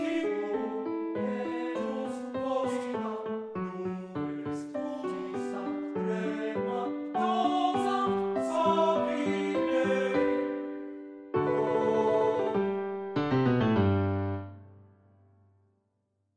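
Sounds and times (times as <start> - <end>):
person singing a lied allegretto: 0.0 - 10.6, 11.4 - 12.8
piano accompanying a lied allegretto: 0.0 - 15.8.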